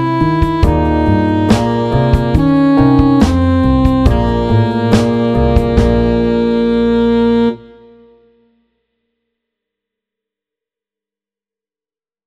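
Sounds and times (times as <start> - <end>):
slow chromatic blues: 0.0 - 8.4.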